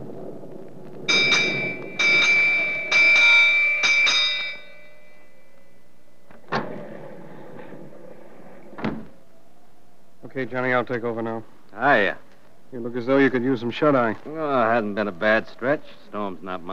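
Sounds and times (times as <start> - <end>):
ship's bell striking the hour: 1.1 - 6.6
speech: 10.4 - 16.7.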